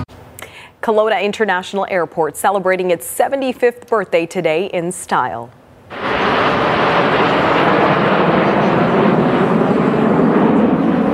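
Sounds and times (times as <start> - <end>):
speech: 0.8 - 5.6
Snowbirds aerobatic team jets flying over Kelowna airshow: 5.9 - 11.1.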